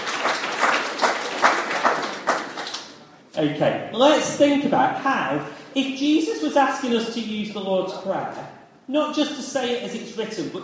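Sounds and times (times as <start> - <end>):
audience applause: 0.0 - 3.0
speech: 3.4 - 10.6.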